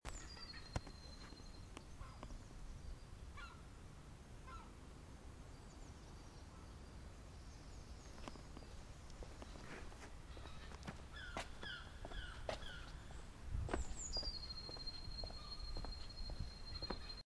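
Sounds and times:
spring morning ambience: 0.0s - 17.2s.

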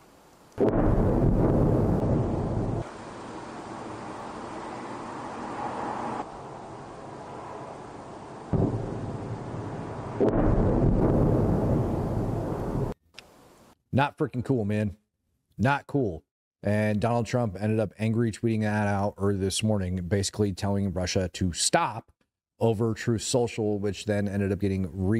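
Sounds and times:
ballistic missile explosion in a city: 0.6s - 2.9s, 8.5s - 13.0s
loud blast: 0.6s - 3.1s, 8.5s - 13.0s
speech: 14.0s - 15.0s, 15.6s - 25.1s.

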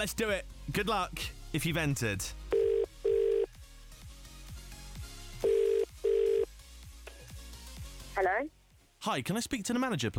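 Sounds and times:
speech: 0.0s - 2.4s, 8.2s - 10.1s
outgoing telephone call British double-ring tone: 2.5s - 3.5s, 5.4s - 6.5s.

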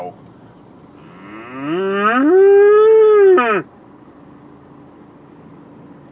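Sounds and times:
cow: 1.0s - 3.7s.

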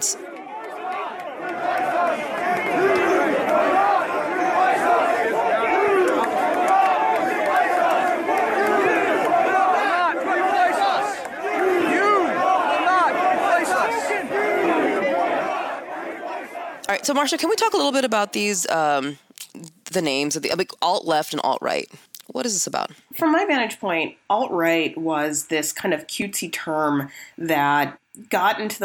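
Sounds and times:
crowd of protesters shouting and chattering: 0.0s - 20.6s
speech: 17.0s - 19.2s, 19.9s - 28.8s.

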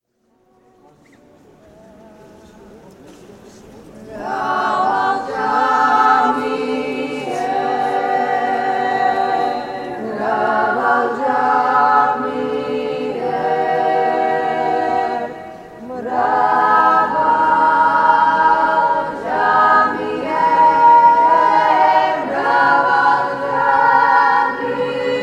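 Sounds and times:
female choir at Svetitskhoveli cathedral Mtskheta Georgia: 4.0s - 25.2s.

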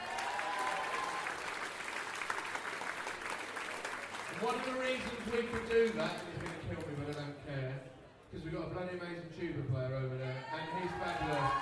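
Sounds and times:
audience applause: 0.0s - 6.9s, 10.8s - 11.5s
speech: 4.4s - 11.5s.

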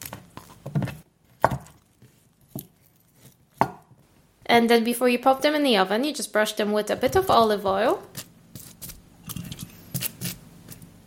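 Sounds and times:
soft potatoes smashed flat with base of a glass: 0.0s - 2.8s, 7.0s - 11.0s
speech: 4.5s - 8.2s.

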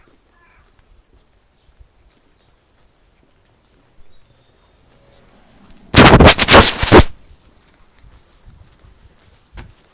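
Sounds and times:
birdsong in Hertfordshire: 0.0s - 5.9s, 7.2s - 8.0s, 8.8s - 9.5s.

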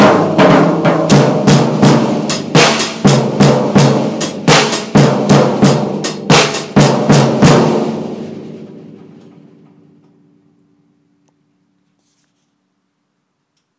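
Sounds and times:
drum beat: 0.0s - 8.6s.

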